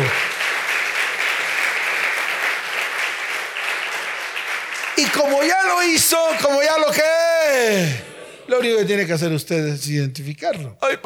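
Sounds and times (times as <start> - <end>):
audience applause: 0.0 - 8.0
speech: 5.0 - 11.0.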